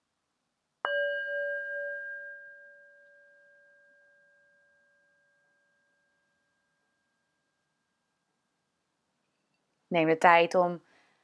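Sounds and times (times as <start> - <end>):
singing bowl struck: 0.9 - 6.1
speech: 9.9 - 10.9.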